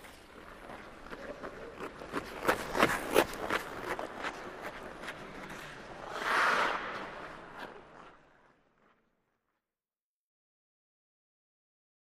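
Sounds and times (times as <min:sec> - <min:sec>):
hockey skater skating fast past: 0:00.0 - 0:09.1.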